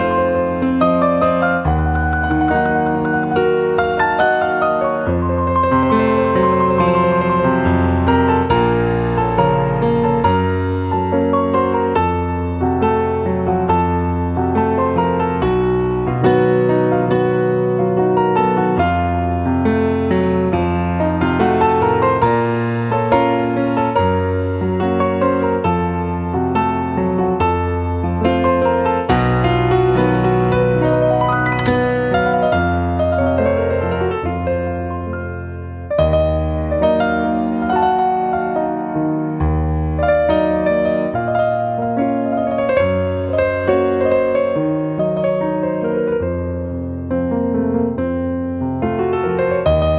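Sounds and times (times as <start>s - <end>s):
piano: 0.0s - 49.9s.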